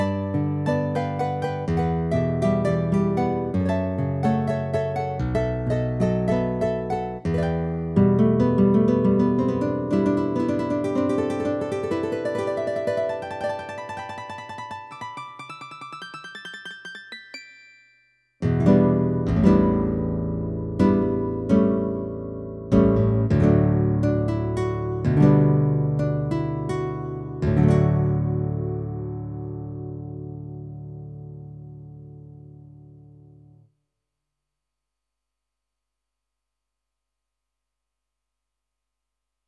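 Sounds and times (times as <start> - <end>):
guitar: 0.0 - 15.0, 18.4 - 33.6.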